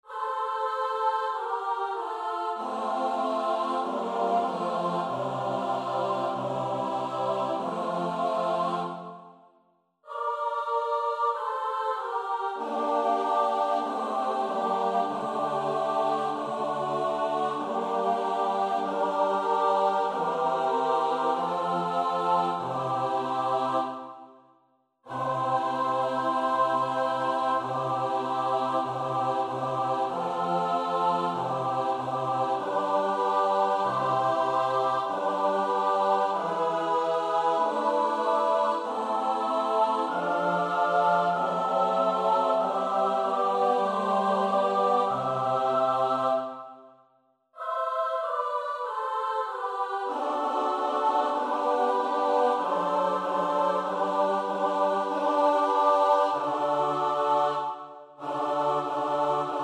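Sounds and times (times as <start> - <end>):
SATB choir part practice: 0.0 - 59.6.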